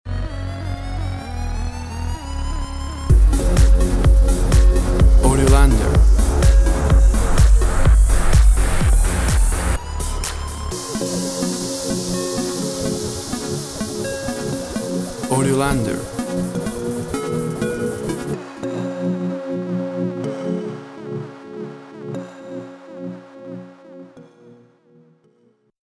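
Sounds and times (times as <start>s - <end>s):
Top 40 electronic dance music: 3.1s - 18.4s.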